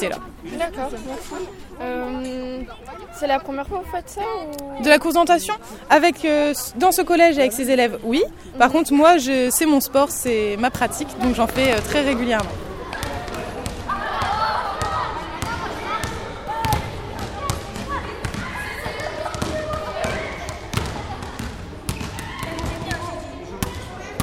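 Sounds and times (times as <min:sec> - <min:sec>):
speech: 0:00.0 - 0:12.7
basketballs dribbled by students in a school gym: 0:10.2 - 0:24.2.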